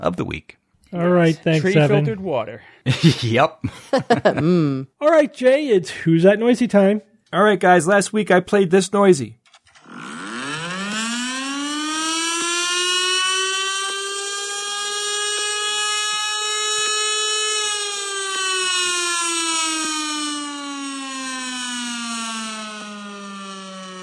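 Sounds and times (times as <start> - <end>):
speech: 0.0 - 10.1
laughter: 1.5 - 2.2, 2.9 - 4.7
tornado siren: 9.8 - 24.0.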